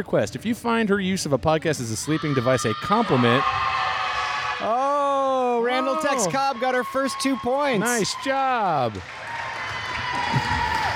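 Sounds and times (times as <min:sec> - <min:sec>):
speech: 0:00.0 - 0:03.8, 0:04.6 - 0:04.9, 0:05.6 - 0:09.2
crowd cheering and applauding: 0:02.9 - 0:10.9.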